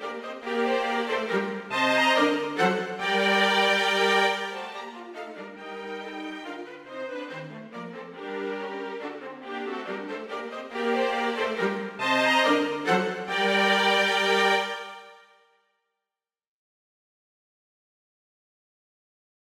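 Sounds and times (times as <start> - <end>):
string quartet playing a minuet: 0.0 - 15.2.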